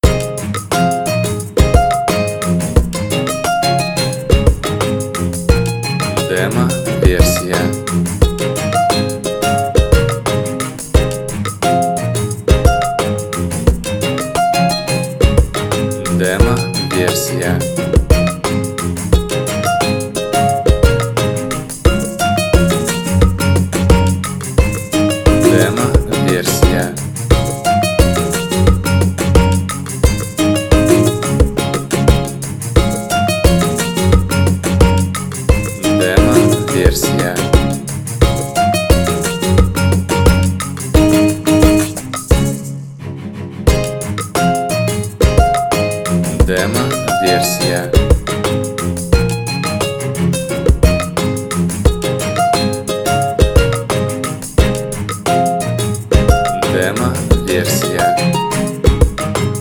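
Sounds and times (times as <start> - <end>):
ukulele melody: 0.0 - 59.5.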